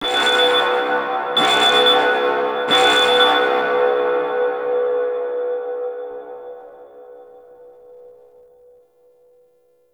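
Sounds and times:
alarm: 0.0s - 5.3s.

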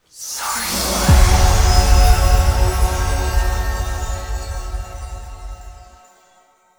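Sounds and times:
spawn music stinger: 1.0s - 6.0s.

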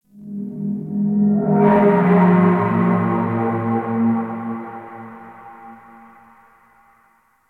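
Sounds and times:
chamber drone: 0.1s - 6.9s.

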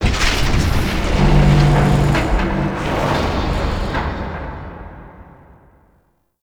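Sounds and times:
void dragon moving: 0.0s - 5.1s.

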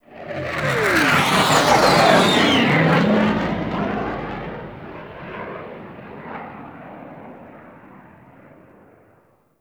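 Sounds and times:
ship fly-by: 0.1s - 6.4s.

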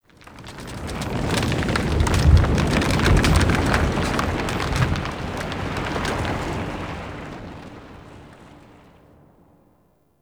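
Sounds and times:
earthquake rumble: 0.1s - 8.7s.

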